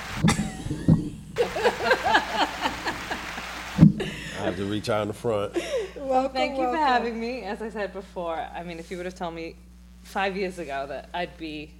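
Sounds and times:
laughter: 0:01.4 - 0:06.1
hands clapping: 0:02.2 - 0:03.9
speech: 0:04.6 - 0:11.7.

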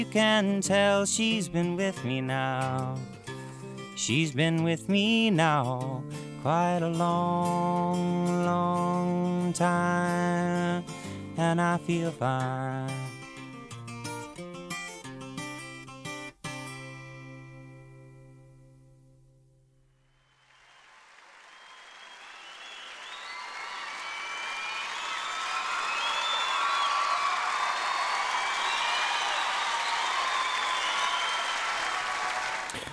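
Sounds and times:
speech: 0:00.0 - 0:03.2, 0:04.0 - 0:13.1
audience applause: 0:20.3 - 0:32.9.

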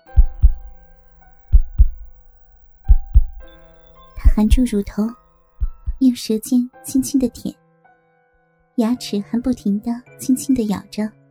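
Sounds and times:
heartbeat pounding: 0:00.0 - 0:00.8, 0:01.5 - 0:02.2, 0:02.9 - 0:03.6, 0:04.2 - 0:04.9, 0:05.6 - 0:06.1
speech: 0:04.4 - 0:05.2, 0:06.0 - 0:07.6, 0:08.8 - 0:11.2.

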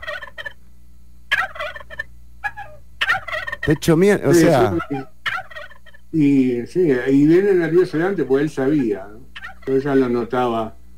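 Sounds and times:
turkey gobbling: 0:00.0 - 0:00.6, 0:01.3 - 0:06.0, 0:08.7 - 0:10.1
speech: 0:03.7 - 0:05.2, 0:06.1 - 0:10.8.

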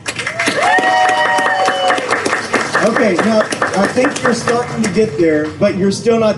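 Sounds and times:
audience applauding for a school theater group: 0:00.0 - 0:05.1
high cheer or whistle: 0:00.2 - 0:02.2
speech: 0:03.0 - 0:06.3.

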